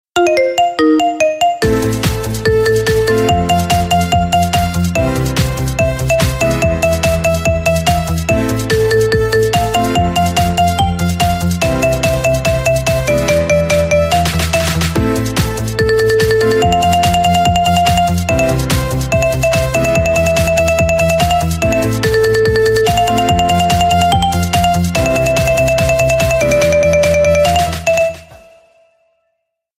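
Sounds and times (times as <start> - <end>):
marimba remix: 0.2 - 28.8.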